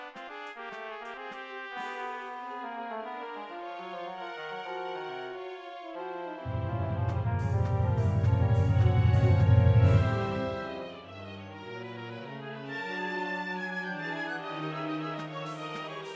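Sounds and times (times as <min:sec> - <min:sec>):
MIDI realization music: 0:06.5 - 0:11.2.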